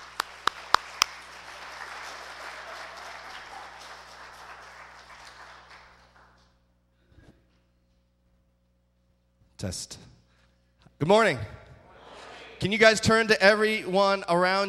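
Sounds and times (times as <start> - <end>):
audience applause: 0.0 - 6.5
speech: 9.6 - 10.1, 11.0 - 11.6, 12.6 - 14.6.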